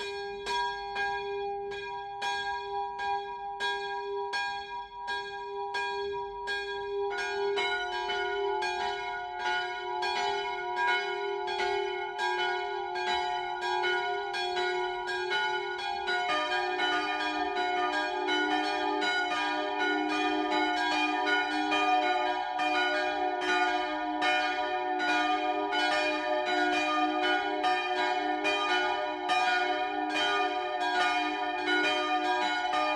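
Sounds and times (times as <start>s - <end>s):
church bells ringing midday peal: 0.0s - 32.9s.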